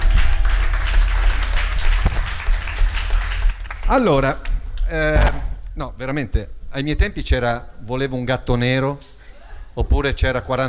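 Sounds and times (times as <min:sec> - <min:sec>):
applause: 0:00.0 - 0:04.6
speech: 0:03.9 - 0:09.1, 0:09.8 - 0:10.6.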